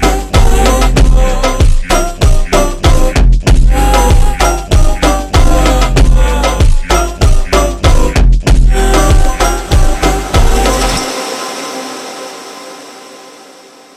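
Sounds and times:
ultra slowed funk music: 0:00.0 - 0:11.2.

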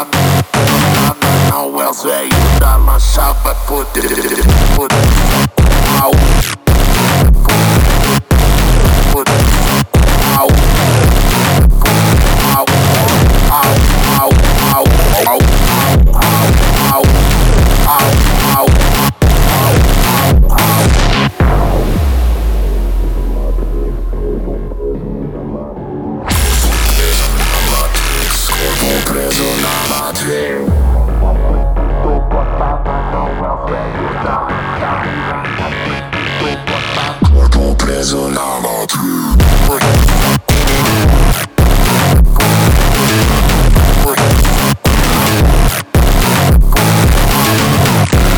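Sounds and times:
funk music: 0:00.2 - 0:48.3.

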